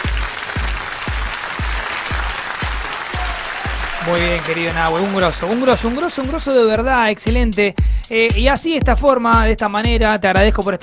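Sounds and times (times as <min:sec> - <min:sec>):
audience applause: 0:00.0 - 0:06.5
speech: 0:04.0 - 0:10.8.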